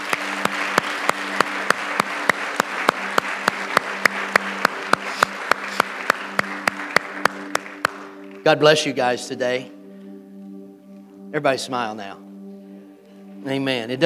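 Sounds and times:
audience clapping in unison with a steady brisk beat: 0.0s - 8.9s
speech: 8.5s - 9.8s, 11.4s - 12.3s, 13.4s - 14.0s.

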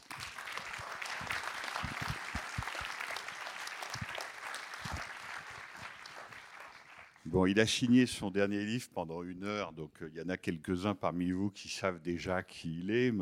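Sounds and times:
audience applause welcoming a guest: 0.0s - 7.3s
speech: 7.4s - 13.1s.

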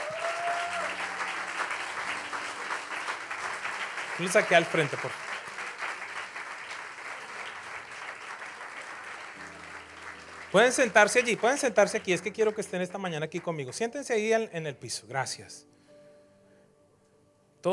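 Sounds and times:
audience applause: 0.0s - 13.6s
speech: 4.2s - 5.2s, 10.5s - 15.7s.

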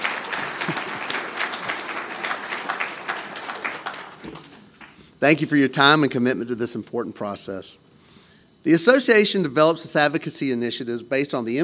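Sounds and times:
round of applause: 0.0s - 5.1s
speech: 5.2s - 7.9s, 8.6s - 11.6s.

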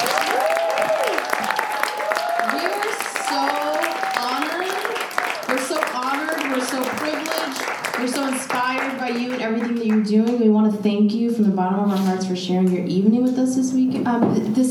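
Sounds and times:
audience applause: 0.0s - 10.0s
speech: 10.8s - 14.6s.

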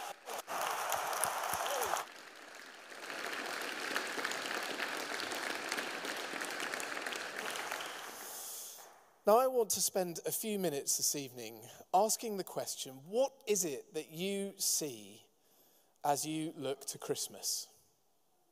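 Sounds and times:
audience applause: 0.0s - 8.5s
speech: 9.3s - 15.3s, 16.0s - 17.7s.

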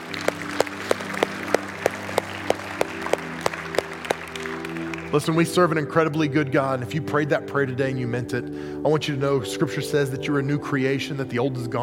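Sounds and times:
audience applause: 0.0s - 5.2s
speech: 5.1s - 11.8s.

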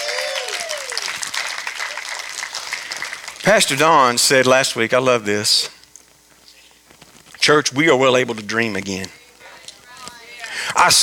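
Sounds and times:
audience clapping: 0.0s - 4.6s
speech: 3.4s - 5.8s, 7.4s - 9.2s, 10.8s - 11.0s.

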